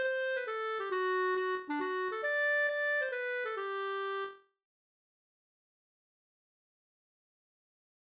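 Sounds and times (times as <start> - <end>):
hambo polska folk dance tune: 0.0 - 4.3.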